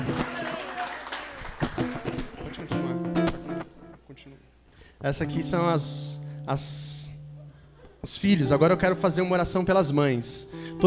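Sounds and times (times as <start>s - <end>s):
audience applauding: 0.0s - 3.0s
speech: 5.0s - 7.0s, 8.0s - 10.8s.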